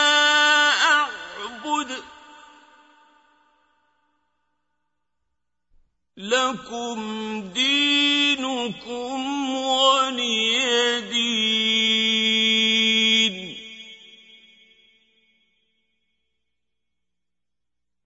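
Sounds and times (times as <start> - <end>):
qari reciting the Quran: 0.0 - 3.8, 6.2 - 14.9.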